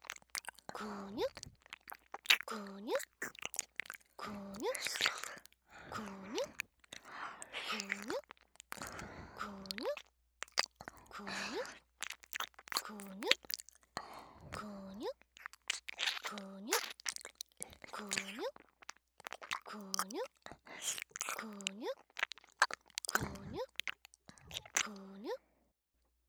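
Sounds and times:
ear licking: 0.0s - 25.2s
breathing: 4.9s - 7.8s, 8.8s - 9.6s, 14.0s - 14.7s, 24.3s - 24.6s.

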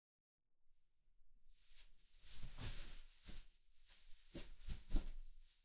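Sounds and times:
person drying own body with a towel after a bath: 1.7s - 5.2s.

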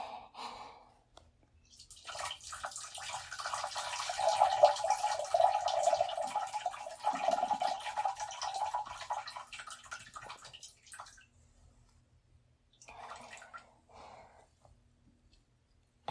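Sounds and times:
person urinating in a toilet: 1.6s - 11.4s, 12.7s - 13.8s.

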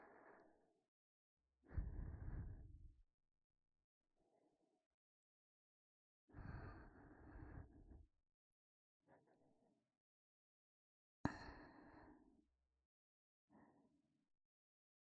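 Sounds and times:
ASMR breathing in the right ear: 0.0s - 0.7s, 1.7s - 2.9s, 6.3s - 8.1s, 11.3s - 12.4s, 13.5s - 14.0s.

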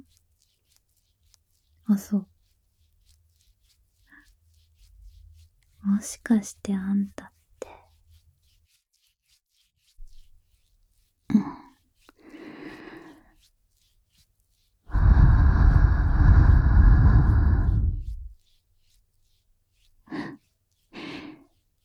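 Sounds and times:
speech: 1.9s - 2.3s, 5.9s - 7.3s
breath blown into an ear: 14.9s - 18.3s.

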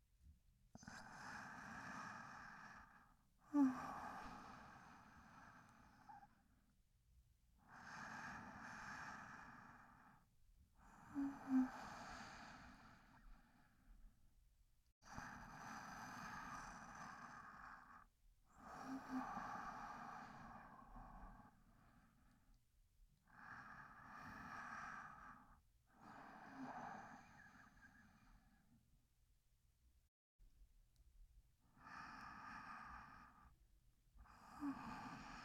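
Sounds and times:
sleep breathing recorded with binaural microphone: 0.8s - 6.4s, 7.6s - 13.9s, 15.0s - 22.4s, 23.3s - 28.7s, 31.8s - 33.5s, 34.2s - 35.4s.

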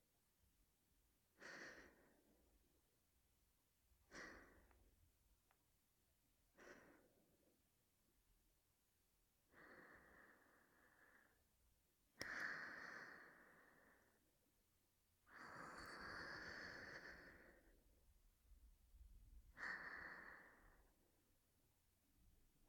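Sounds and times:
breathing and sleep breathing: 1.4s - 2.4s, 6.5s - 7.5s, 9.5s - 11.5s, 12.2s - 14.3s, 15.3s - 17.8s, 19.5s - 21.1s.

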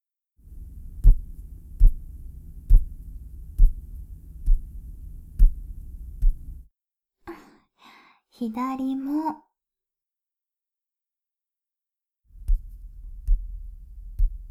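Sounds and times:
clasped hands tapping on shoulders: 2.7s - 3.0s, 3.6s - 4.8s, 5.4s - 6.5s
speech: 8.4s - 9.4s.

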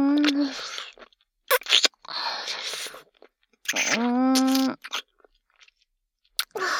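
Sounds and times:
ASMR kissing and deep kissing sounds: 0.2s - 0.6s, 1.5s - 3.1s, 3.7s - 5.1s, 6.4s - 6.7s.

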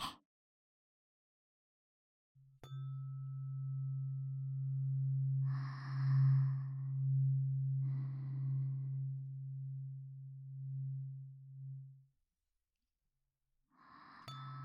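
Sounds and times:
tuning fork ringing in the right channel: 2.4s - 12.1s, 14.3s - 14.6s.

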